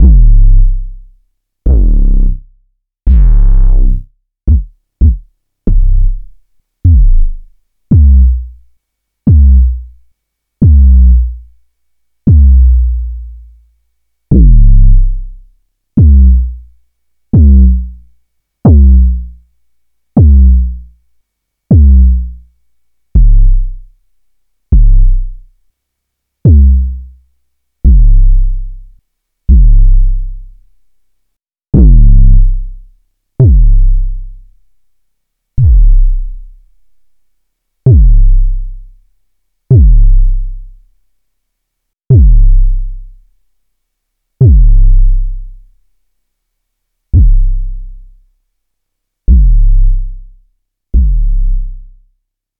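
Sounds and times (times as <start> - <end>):
compressed and equalized kick drum: 0.0 - 0.5, 1.7 - 2.3, 3.1 - 3.7, 4.5 - 6.1, 6.8 - 8.4, 9.3 - 9.8, 10.6 - 11.1, 12.3 - 12.7, 14.3 - 14.9, 16.0 - 16.4, 17.4 - 17.8, 18.7 - 19.1, 20.2 - 20.6, 21.7 - 22.2, 23.2 - 23.6, 24.7 - 25.2, 26.5 - 26.9, 27.8 - 28.4, 29.5 - 30.0, 31.7 - 32.4, 33.4 - 34.0, 35.6 - 36.1, 37.9 - 38.4, 39.7 - 40.2, 42.1 - 42.6, 44.4 - 45.0, 47.2 - 47.6, 49.3 - 49.9, 50.9 - 51.6.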